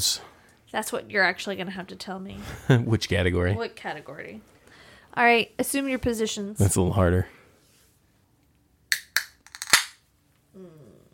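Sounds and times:
speech: 0.0s - 7.4s
laughter: 8.1s - 8.9s, 9.9s - 11.1s
beer can cracked open: 8.9s - 10.0s.

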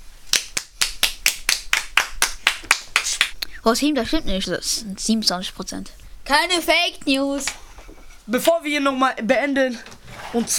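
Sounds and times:
applause: 0.3s - 3.3s
speech: 3.6s - 7.6s, 8.3s - 10.5s.

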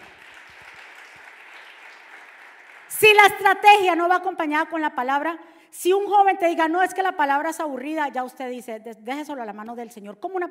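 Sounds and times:
audience applause: 0.0s - 3.0s
speech: 3.0s - 10.4s.

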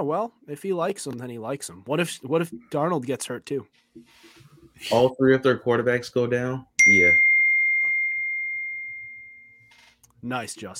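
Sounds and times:
speech: 0.0s - 7.3s, 10.2s - 10.7s
phone text message notification tone: 6.8s - 9.8s.

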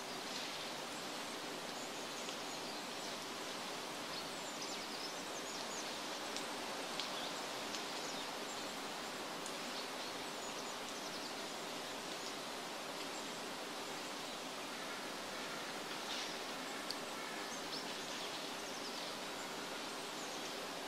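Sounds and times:
forest steady hiss: 0.0s - 20.8s
small ticks: 6.3s - 8.1s.

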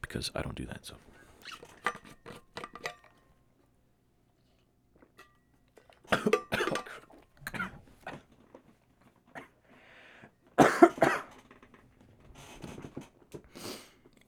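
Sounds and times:
speech: 0.1s - 1.7s
person coughing after inhaling water: 6.1s - 8.2s, 10.6s - 11.4s.

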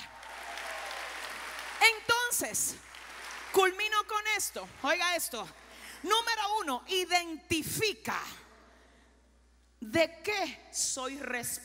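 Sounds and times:
audience applauding loudly: 0.0s - 5.0s
speech: 2.4s - 2.9s, 3.5s - 8.4s, 9.8s - 11.6s.

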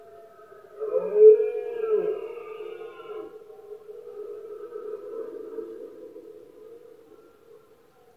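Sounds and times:
red deer roaring: 0.1s - 6.2s.

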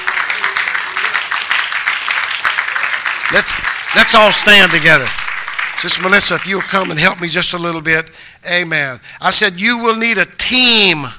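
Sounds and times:
crowd clapping: 0.0s - 7.8s
speech: 3.3s - 5.2s, 5.8s - 11.1s.

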